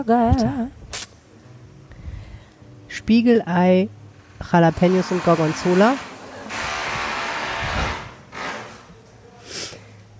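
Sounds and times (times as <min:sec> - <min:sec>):
speech: 0:00.0 - 0:00.8, 0:03.0 - 0:06.1
drill whirring: 0:04.3 - 0:08.9.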